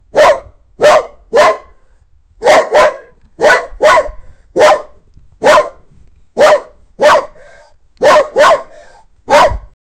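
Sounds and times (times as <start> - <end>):
animal barking: 0.2 - 1.7, 2.4 - 5.8, 6.4 - 9.7.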